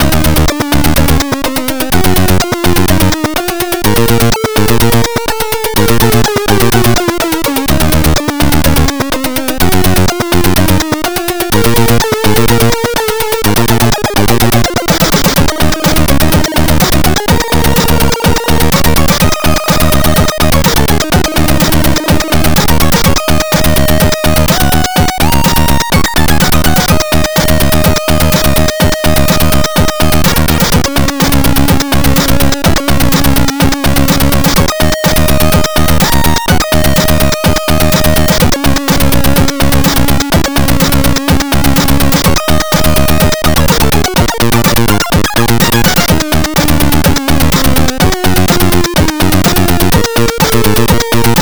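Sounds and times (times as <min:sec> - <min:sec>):
C64 in-game music: 0:00.0 - 0:51.4.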